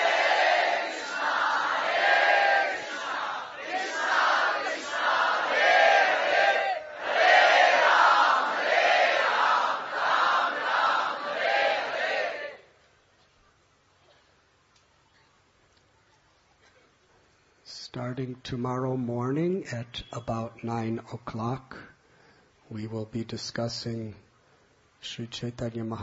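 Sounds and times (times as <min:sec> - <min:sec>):
group of voices chanting holy names: 0:00.0 - 0:12.6
speech: 0:18.4 - 0:21.9, 0:22.7 - 0:24.2, 0:25.0 - 0:26.0.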